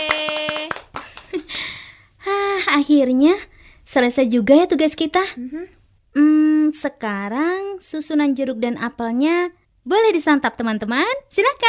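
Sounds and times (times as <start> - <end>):
hand claps in a short rhythmic run: 0.0 - 1.6
speech: 2.8 - 11.6.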